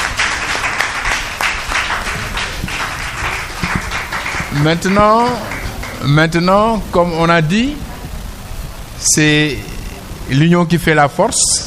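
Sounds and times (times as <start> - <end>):
loud cheer-like call: 0.0 - 6.3
crowd applauding: 0.0 - 7.1
speech: 4.6 - 7.8, 9.0 - 9.7, 10.3 - 11.6.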